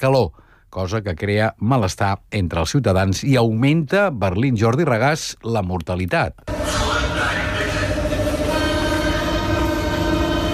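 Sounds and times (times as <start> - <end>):
speech: 0.0 - 7.2
Berlin metro train in a heat wave: 6.5 - 10.5.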